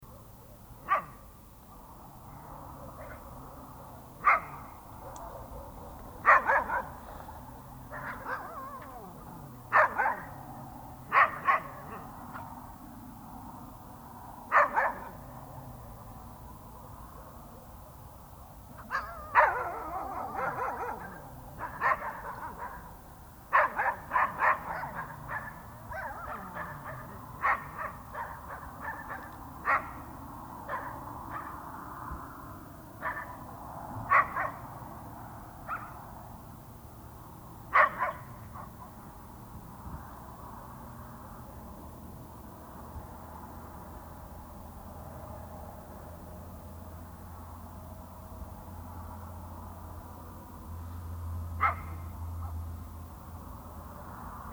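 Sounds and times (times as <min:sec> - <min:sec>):
dogs late at night: 0:00.1 - 0:01.3, 0:02.2 - 0:12.7, 0:14.5 - 0:15.8, 0:18.7 - 0:36.4, 0:37.7 - 0:39.2, 0:51.6 - 0:52.6.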